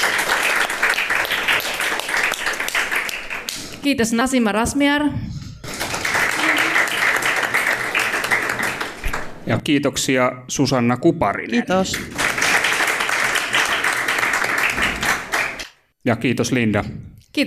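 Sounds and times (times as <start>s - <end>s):
audience applause: 0.0s - 3.6s, 5.6s - 9.4s, 11.9s - 15.7s
speech: 3.8s - 5.4s, 9.5s - 12.2s, 16.0s - 17.4s.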